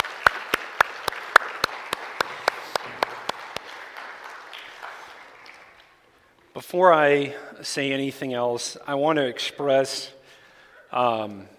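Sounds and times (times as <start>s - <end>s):
audience applause: 0.0s - 6.2s
speech: 6.6s - 10.2s, 10.9s - 11.5s.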